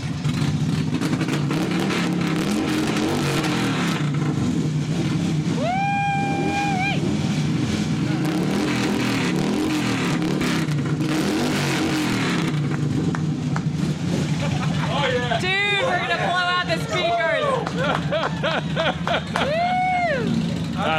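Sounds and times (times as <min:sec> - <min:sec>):
motorcycle engines rumbling and revving: 0:00.0 - 0:20.9
laughter: 0:14.3 - 0:20.9.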